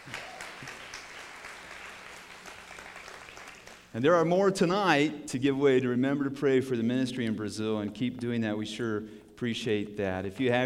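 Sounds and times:
audience clapping: 0.0 - 3.9
speech: 3.9 - 10.6.

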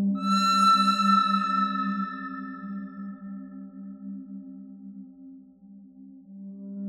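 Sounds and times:
pentatonic melody: 0.2 - 2.9.

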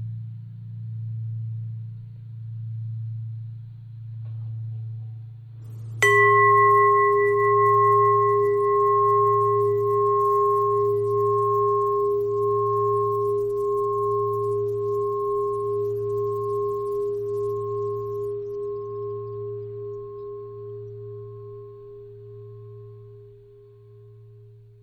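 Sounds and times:
long bending bell tones: 5.8 - 24.6.

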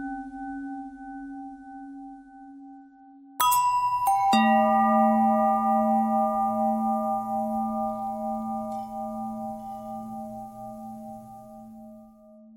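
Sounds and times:
long pentatonic bell tones: 3.4 - 12.5.

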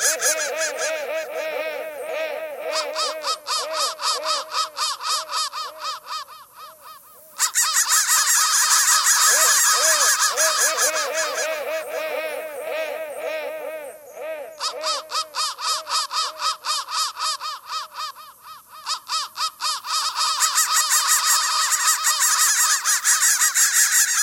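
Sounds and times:
crow cawing: 0.0 - 24.2.

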